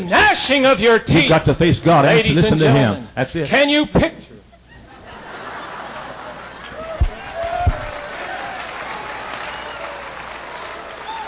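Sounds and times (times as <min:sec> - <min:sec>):
speech: 0:00.0 - 0:04.3
laughter: 0:04.5 - 0:08.6
audience clapping: 0:05.9 - 0:11.2
dull low thumps: 0:07.0 - 0:08.0.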